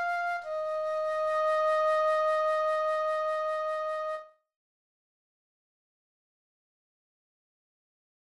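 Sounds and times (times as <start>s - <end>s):
flute chorale and recessional: 0.0s - 4.3s.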